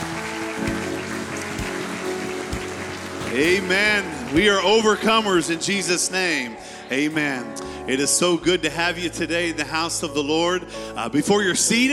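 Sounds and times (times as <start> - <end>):
audience clapping hands in praise: 0.0 - 6.5
speech: 3.4 - 11.9.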